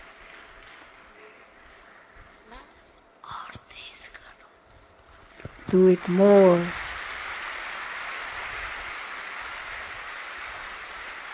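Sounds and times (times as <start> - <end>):
audience clapping: 0.0 - 2.4, 5.3 - 11.3
speech: 5.7 - 6.8.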